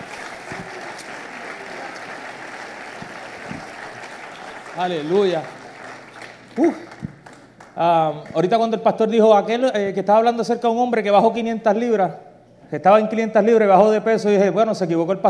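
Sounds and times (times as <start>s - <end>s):
audience applauding: 0.0s - 8.6s
speech: 4.8s - 5.6s, 6.6s - 6.9s, 7.8s - 15.2s.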